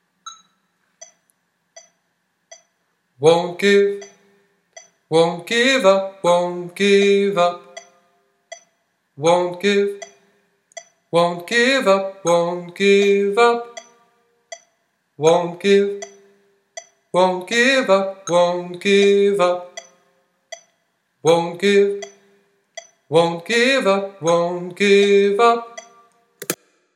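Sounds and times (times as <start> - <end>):
tenor singing: 3.2 - 4.2, 5.1 - 7.9, 9.2 - 10.2, 11.1 - 13.9, 15.2 - 16.2, 17.2 - 19.9, 21.2 - 22.2, 23.1 - 26.0.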